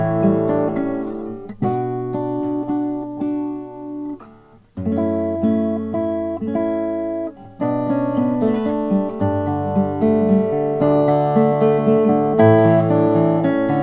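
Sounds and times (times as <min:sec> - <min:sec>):
12-fret Guatemalan rosewood acoustic guitar: 0:00.0 - 0:13.8.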